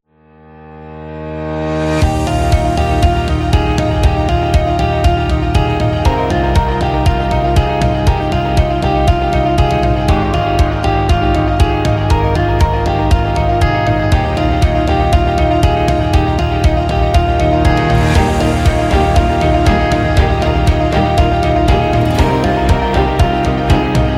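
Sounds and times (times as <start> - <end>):
motivational corporate music: 1.6 - 24.1.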